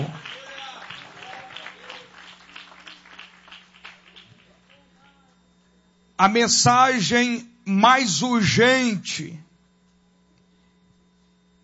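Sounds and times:
audience applauding: 0.0s - 5.0s
speech: 6.2s - 9.4s.

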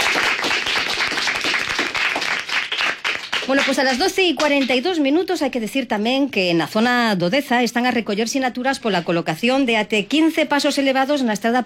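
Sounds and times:
schoolchildren clapping: 0.0s - 4.8s
speech: 3.5s - 11.6s.

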